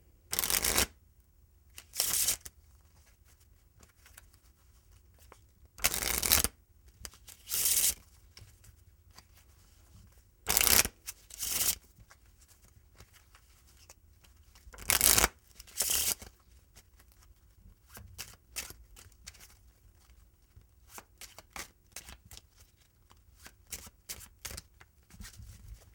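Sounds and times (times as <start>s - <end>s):
cards shuffling: 0.3s - 0.9s, 1.8s - 2.5s, 5.3s - 8.5s, 10.5s - 11.8s, 12.6s - 19.6s, 23.1s - 25.9s.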